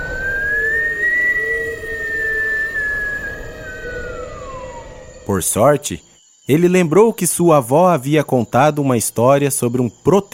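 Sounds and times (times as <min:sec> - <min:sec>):
low rough rumbling: 0:00.0 - 0:05.8
mysterious whistling in the forest: 0:00.0 - 0:06.1
speech: 0:05.3 - 0:10.3.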